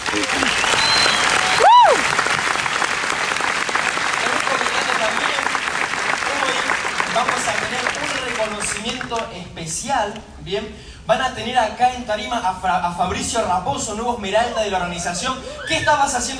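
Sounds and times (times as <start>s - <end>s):
audience applause: 0.0s - 9.3s
speech: 0.1s - 0.7s, 9.1s - 16.3s.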